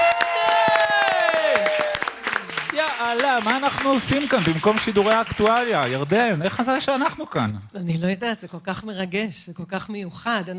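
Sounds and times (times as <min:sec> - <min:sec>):
small group applauding: 0:00.0 - 0:06.8
speech: 0:03.4 - 0:10.5.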